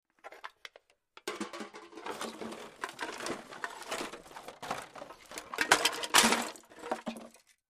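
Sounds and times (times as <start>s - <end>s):
searching through wooden garbage or junk pile: 1.3s - 7.6s.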